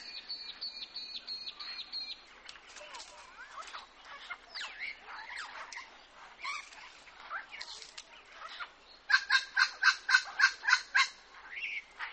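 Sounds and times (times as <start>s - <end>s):
Red wattlebird loud rasping clucks: 9.1s - 11.2s.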